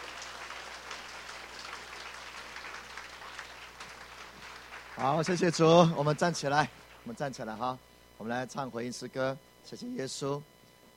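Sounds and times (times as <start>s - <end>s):
warm applause from audience: 0.0s - 7.1s
speech: 5.0s - 10.9s.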